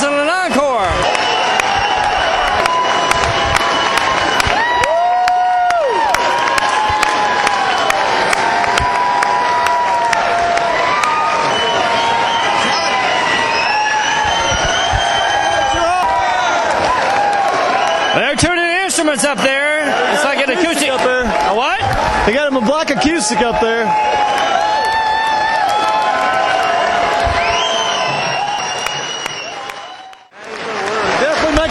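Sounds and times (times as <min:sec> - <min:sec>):
packed saloon crowd cheering in a frenzy: 0:00.0 - 0:31.6
scattered clapping: 0:00.9 - 0:18.5, 0:24.2 - 0:31.6
high whistles: 0:01.0 - 0:04.9, 0:11.4 - 0:16.1, 0:27.2 - 0:30.3
speech: 0:23.0 - 0:24.4.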